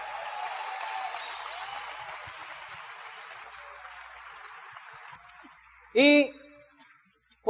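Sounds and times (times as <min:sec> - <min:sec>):
audience applause: 0:00.0 - 0:06.0
speech: 0:06.0 - 0:06.4.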